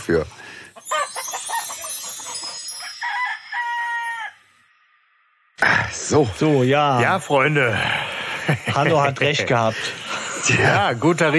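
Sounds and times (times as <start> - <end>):
speech: 0.0 - 0.4, 6.1 - 11.3
rooster crowing: 0.9 - 4.6
laughter: 7.0 - 11.3.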